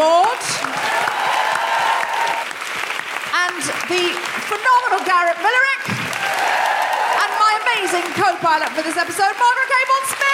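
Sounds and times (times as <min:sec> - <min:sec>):
audience applause: 0:00.0 - 0:10.3
speech: 0:03.9 - 0:05.9, 0:07.8 - 0:10.3.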